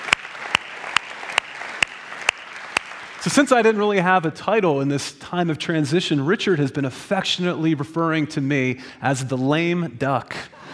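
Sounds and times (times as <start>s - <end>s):
sharp audience claps: 0.0s - 3.6s
speech: 3.2s - 10.6s.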